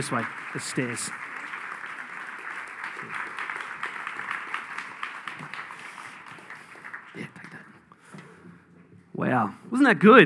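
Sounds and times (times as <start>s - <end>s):
speech: 0.0s - 1.3s, 9.3s - 10.2s
audience applause: 0.0s - 7.7s.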